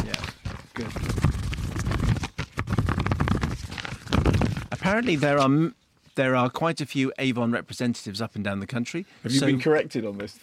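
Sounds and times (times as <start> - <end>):
papers shuffling: 0.0 - 5.6
speech: 4.9 - 10.4.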